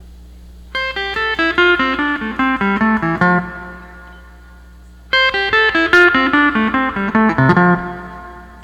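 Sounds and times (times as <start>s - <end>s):
12-string lap guitar playing: 0.7s - 8.6s.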